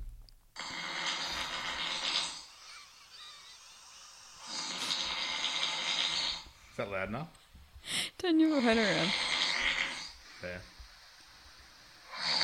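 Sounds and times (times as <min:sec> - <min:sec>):
person snoring: 0:00.6 - 0:06.6, 0:08.4 - 0:10.2, 0:12.1 - 0:12.4
speech: 0:06.8 - 0:09.3, 0:10.4 - 0:10.7.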